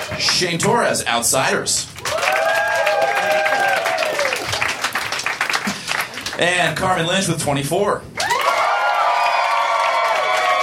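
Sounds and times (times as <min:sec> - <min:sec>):
audience applause and cheering: 0:00.0 - 0:00.5, 0:02.0 - 0:06.4, 0:08.2 - 0:10.6
speech: 0:00.2 - 0:02.2, 0:06.4 - 0:08.2.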